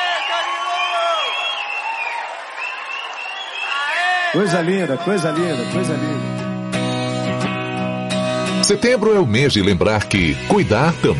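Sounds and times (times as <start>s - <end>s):
audience applause: 0.0s - 5.5s
faint crowd voices and cheering: 0.0s - 9.7s
speech: 4.3s - 6.4s, 8.7s - 11.1s.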